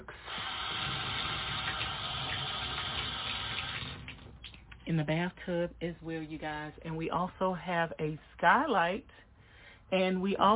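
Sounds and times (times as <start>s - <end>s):
water running in a bathroom toilet: 0.0s - 4.8s
speech: 4.9s - 9.3s, 9.9s - 10.5s.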